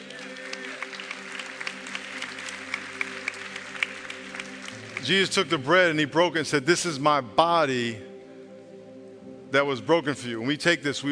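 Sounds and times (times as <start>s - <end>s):
audience applauding: 0.0s - 5.7s
speech: 5.0s - 8.1s, 9.5s - 11.0s.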